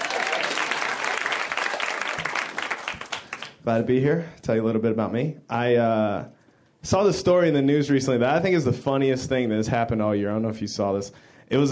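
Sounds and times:
audience applause: 0:00.0 - 0:03.6
speech: 0:03.6 - 0:11.6.

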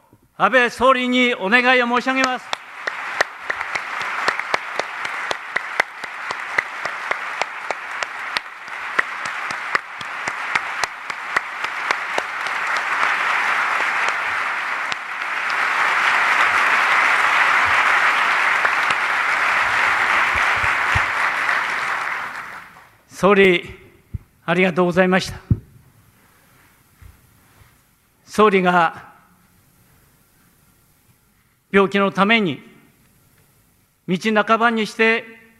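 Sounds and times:
speech: 0:00.4 - 0:02.6, 0:23.2 - 0:23.8, 0:24.5 - 0:25.5, 0:28.4 - 0:29.1, 0:31.8 - 0:32.7, 0:34.1 - 0:35.4
audience applause: 0:02.0 - 0:23.0.

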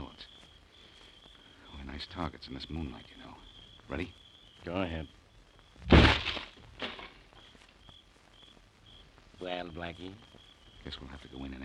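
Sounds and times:
speech: 0:02.0 - 0:03.3, 0:03.9 - 0:05.2, 0:09.4 - 0:11.6
door being kicked open: 0:05.8 - 0:07.2.

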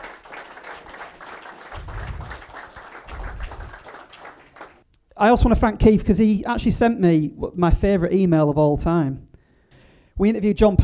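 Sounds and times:
audience applause: 0:00.0 - 0:04.8
speech: 0:05.2 - 0:09.3, 0:10.2 - 0:10.8.

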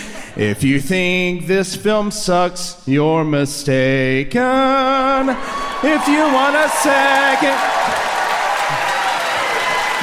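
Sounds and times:
speech: 0:00.4 - 0:08.1
audience clapping: 0:05.5 - 0:10.0.

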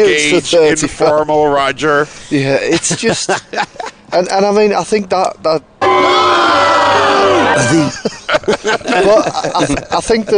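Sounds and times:
speech: 0:00.0 - 0:06.2, 0:07.6 - 0:10.3
laughter: 0:02.6 - 0:04.1, 0:07.4 - 0:10.3
crowd booing during Super Bowl 51 week: 0:05.8 - 0:08.0.

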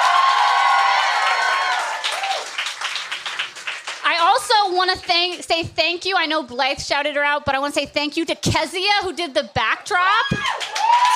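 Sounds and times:
audience applause and cheering: 0:00.0 - 0:05.4, 0:10.2 - 0:11.1
speech: 0:04.7 - 0:11.1.

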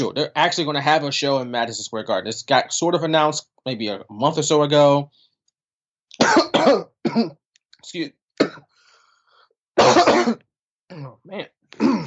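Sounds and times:
speech: 0:00.0 - 0:05.2, 0:06.2 - 0:08.7, 0:09.8 - 0:12.0
person clearing throat: 0:06.2 - 0:07.4, 0:09.8 - 0:11.2, 0:11.8 - 0:12.0
person coughing after something went down the wrong pipe: 0:06.2 - 0:07.4, 0:08.4 - 0:08.7, 0:09.8 - 0:11.2, 0:11.8 - 0:12.0.

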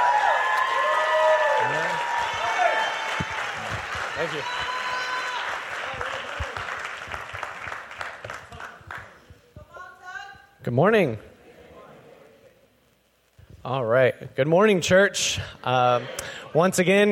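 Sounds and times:
church congregation applauding to welcome a guest speaker: 0:00.0 - 0:09.2
speech: 0:04.2 - 0:04.7, 0:10.7 - 0:11.3, 0:13.7 - 0:17.1.

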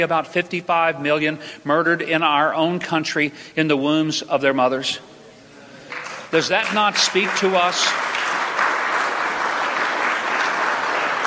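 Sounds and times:
speech: 0:00.0 - 0:05.2, 0:06.3 - 0:08.1
half-hearted slow applause from audience: 0:05.8 - 0:11.2.

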